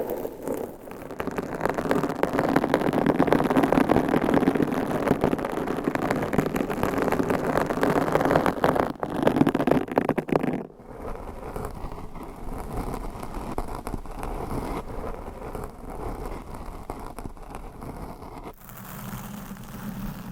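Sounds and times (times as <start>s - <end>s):
microphone scratching with long nails: 0.0s - 20.3s.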